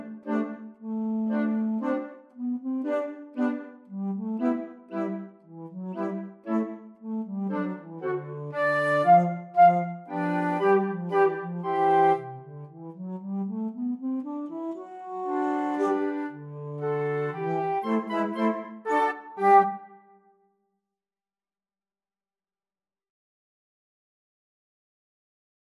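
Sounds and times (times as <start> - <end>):
flute: 0.0 - 12.8, 14.4 - 20.2.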